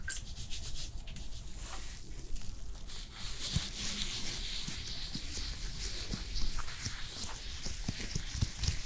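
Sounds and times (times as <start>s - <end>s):
wet, sticky handling sounds of after sun facial care: 0.1s - 8.8s
soft tapping during a cooling spa facial: 2.0s - 8.8s.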